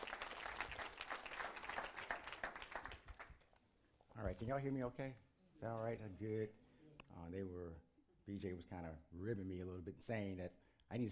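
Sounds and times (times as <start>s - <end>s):
audience hand clapping: 0.0s - 3.5s
speech: 4.2s - 11.1s.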